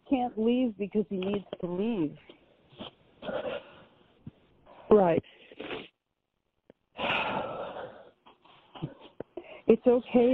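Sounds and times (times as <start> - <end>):
speech: 0.1 - 3.6, 4.9 - 5.4, 9.7 - 10.3
sniffling: 2.7 - 4.0, 4.6 - 6.0, 7.0 - 9.7
person blowing nose: 5.5 - 6.0.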